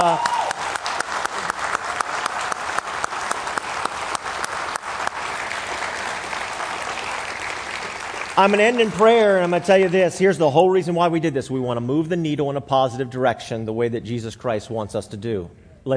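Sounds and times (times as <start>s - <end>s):
speech: 0.0s - 0.3s, 8.4s - 15.9s
audience applause: 0.0s - 10.2s.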